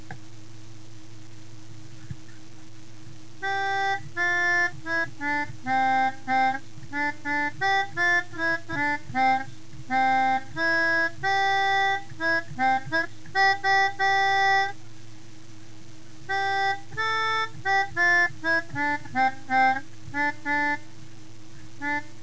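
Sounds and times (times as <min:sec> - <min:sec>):
melodica: 0:03.4 - 0:14.8, 0:16.2 - 0:20.9, 0:21.8 - 0:22.2.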